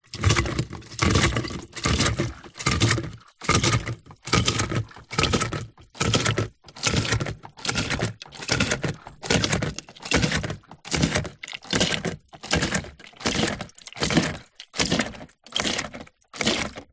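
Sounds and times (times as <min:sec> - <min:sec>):
industrial hand siphon pump plastic squeeze squirt: 0:00.0 - 0:16.9.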